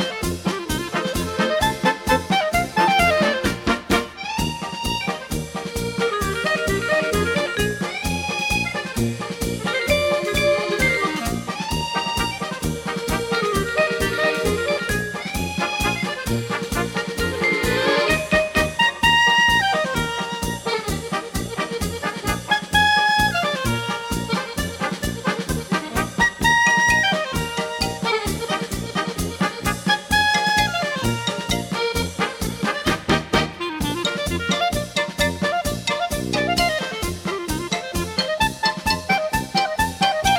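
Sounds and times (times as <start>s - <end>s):
German band playing a polka: 0.0s - 40.3s
clarinet playing a polka: 0.0s - 40.3s.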